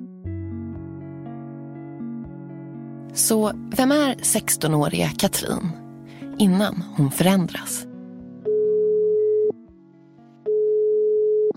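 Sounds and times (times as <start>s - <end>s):
speech: 3.1s - 5.8s, 6.4s - 7.9s
telephone ringing tone of outgoing call: 8.5s - 9.6s, 10.5s - 11.5s.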